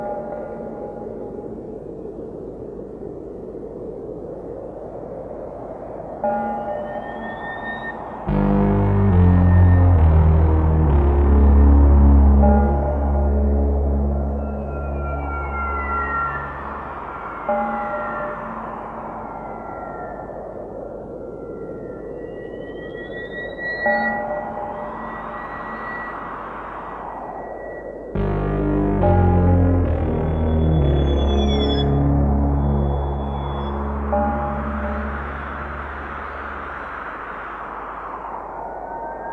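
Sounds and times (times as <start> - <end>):
glockenspiel: 6.2 - 8.0, 9.0 - 19.4, 22.4 - 26.5, 28.2 - 36.3.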